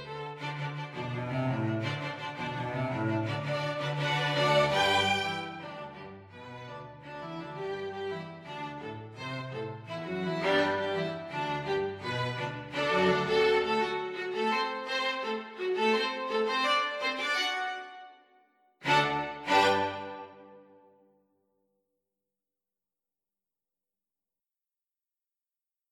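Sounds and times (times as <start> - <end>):
string quartet playing salsa: 0.0 - 17.8, 18.9 - 20.5.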